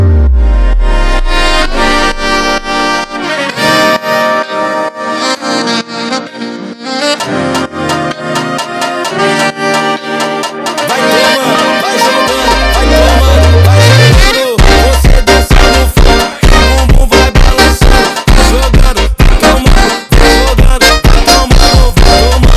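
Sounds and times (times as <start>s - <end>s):
funk saxophone: 0.0s - 22.5s.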